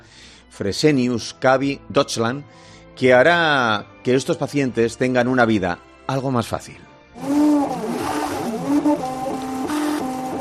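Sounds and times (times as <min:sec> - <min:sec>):
speech: 0:00.6 - 0:07.4
3D printer operating: 0:07.2 - 0:10.3.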